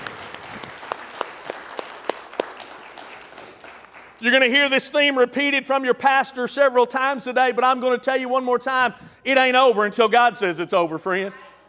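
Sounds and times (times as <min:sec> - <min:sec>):
crowd clapping: 0:00.0 - 0:04.7
speech: 0:04.2 - 0:11.4.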